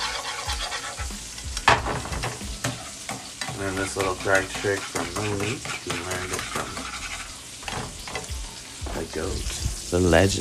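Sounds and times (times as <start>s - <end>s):
whisk clinking against the pan: 0.0s - 7.2s
whisk scraping eggs in a pan: 0.0s - 8.4s
eggs sizzling in a pan: 0.0s - 10.3s
speech: 3.6s - 6.6s, 9.2s - 10.3s.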